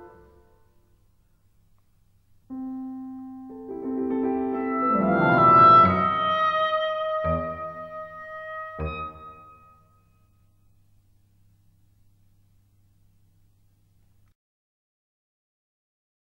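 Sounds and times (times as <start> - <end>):
oboe and piano waltz, allegretto rubato: 2.5 - 9.9.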